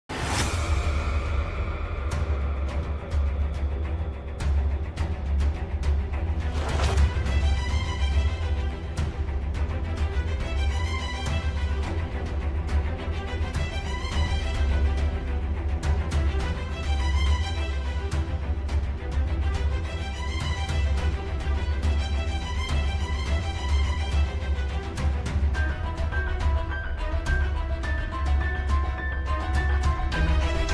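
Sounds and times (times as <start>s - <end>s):
instrumental background music: 0.1s - 30.7s.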